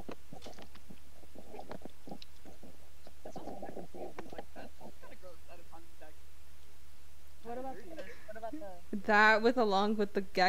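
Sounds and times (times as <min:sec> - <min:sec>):
wet mouth clicks, smacks and tongue pops: 0:00.0 - 0:05.0
speech: 0:09.0 - 0:10.4.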